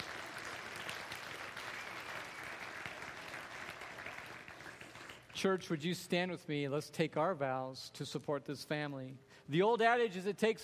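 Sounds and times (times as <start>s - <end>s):
audience clapping: 0.0s - 5.6s
speech: 5.4s - 10.6s.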